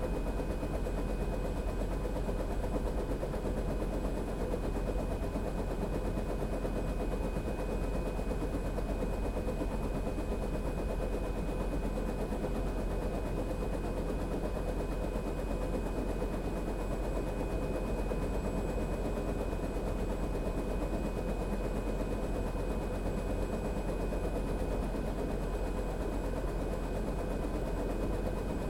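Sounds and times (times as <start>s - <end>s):
Bell UH-1 Iroquois helicopter idling heard from the interior: 0.0s - 28.6s.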